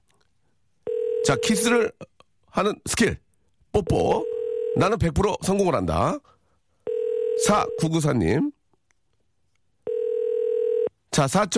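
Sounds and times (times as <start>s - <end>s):
telephone ringback tone: 0.9s - 1.6s, 4.2s - 4.8s, 6.9s - 7.9s, 9.9s - 10.9s
speech: 1.3s - 3.2s, 3.8s - 6.4s, 7.4s - 8.6s, 11.1s - 11.5s.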